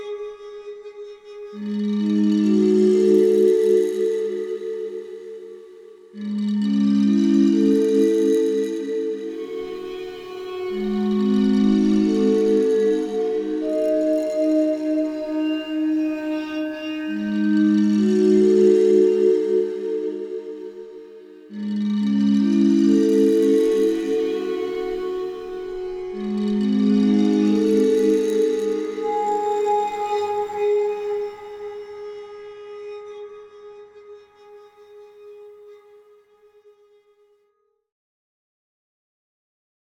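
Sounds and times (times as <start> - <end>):
waterphone: 1.3 - 32.8.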